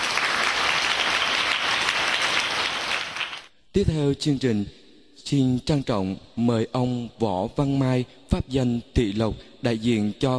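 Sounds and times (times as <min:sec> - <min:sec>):
audience applause: 0:00.0 - 0:03.5
speech: 0:03.8 - 0:10.3.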